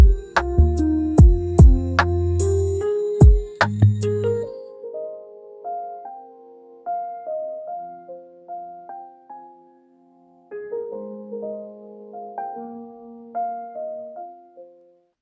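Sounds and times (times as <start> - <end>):
rainy lofi music: 0.0 - 4.6.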